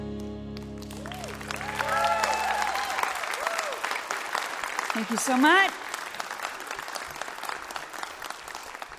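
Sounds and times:
large live concert crowd applauding: 0.2 - 8.9
crowd cheering and whooping: 0.8 - 4.4
speech: 5.0 - 5.8.

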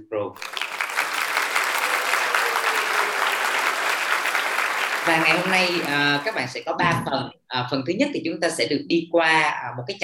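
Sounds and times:
speech: 0.0 - 0.6, 5.0 - 10.0
audience applause: 0.4 - 6.6.

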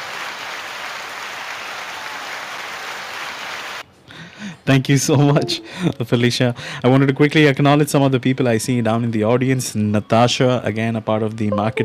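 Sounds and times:
applause: 0.0 - 3.8
speech: 4.7 - 11.8.

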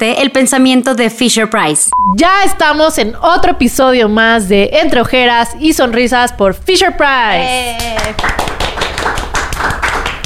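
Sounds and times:
speech: 0.0 - 9.8
audience applause: 7.8 - 10.2.

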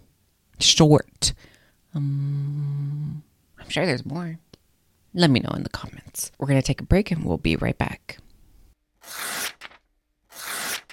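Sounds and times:
speech: 0.6 - 4.4, 5.2 - 8.2
paper tearing transition effect: 9.0 - 10.9.

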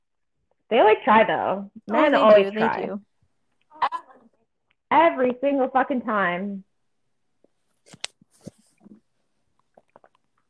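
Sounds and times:
speech: 0.7 - 3.1, 4.9 - 6.7
person sipping coffee: 9.6 - 10.4.

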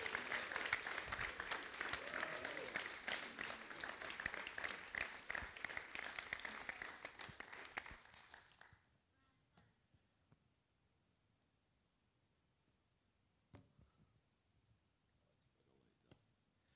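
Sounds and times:
audience applause welcoming a guest speaker to the stage: 0.0 - 8.7.

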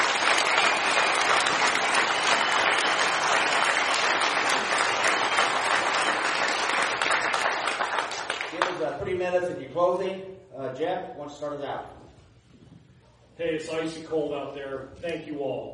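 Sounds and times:
crowd applauding for candidates: 0.0 - 9.0
speech: 9.3 - 12.0, 13.4 - 15.7.

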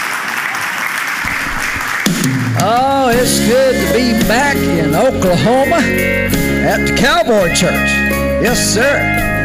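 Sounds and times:
audience applause at a cowboy church welcoming guests: 0.0 - 4.1
speech: 2.2 - 9.3.

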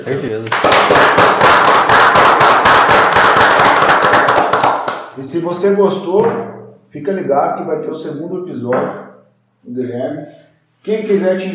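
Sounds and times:
speech: 0.0 - 2.9, 5.2 - 9.0, 9.6 - 11.5
applause: 0.4 - 5.2.

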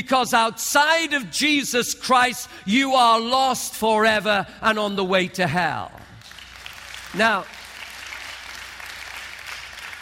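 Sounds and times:
speech: 0.1 - 6.1, 7.1 - 7.6
audience clapping: 5.9 - 10.0.

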